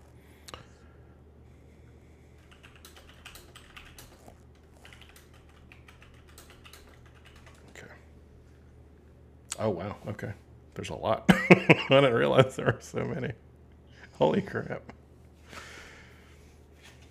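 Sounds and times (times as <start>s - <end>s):
typing a Google search on a computer keyboard: 2.4s - 7.8s
speech: 9.6s - 13.4s, 14.2s - 15.0s.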